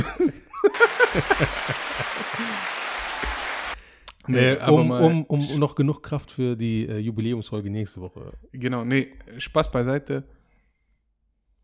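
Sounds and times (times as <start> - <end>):
laughter and chuckling: 0.0 - 2.8
applause: 0.7 - 3.8
speech: 1.2 - 1.8, 4.3 - 10.4.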